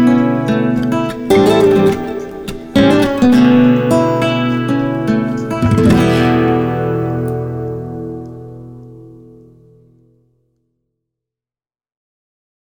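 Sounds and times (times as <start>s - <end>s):
rhythm guitar: 0.0s - 9.4s.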